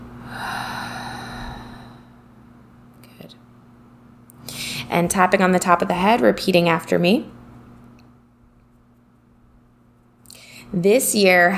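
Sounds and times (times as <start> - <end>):
low hum: 0.0 - 8.0
deep exhale during a guided tapping relaxation exercise: 0.1 - 2.3, 4.4 - 4.9
speech: 4.9 - 7.4, 10.8 - 11.5.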